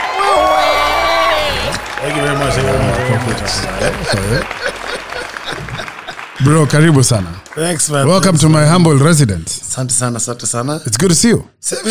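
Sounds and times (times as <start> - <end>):
cheering and whooping voices in a home studio: 0.0 - 6.8
crowd noise: 0.0 - 9.1
speech: 2.1 - 5.0, 6.4 - 11.8.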